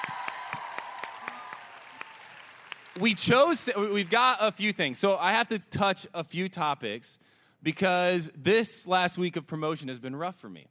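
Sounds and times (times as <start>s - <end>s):
audience applause: 0.0s - 4.2s
speech: 3.0s - 10.6s.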